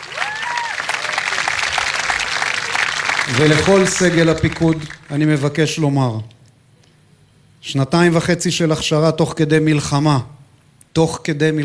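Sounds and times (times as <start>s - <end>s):
crowd applauding: 0.0s - 5.4s
speech: 3.3s - 6.3s, 7.6s - 11.6s.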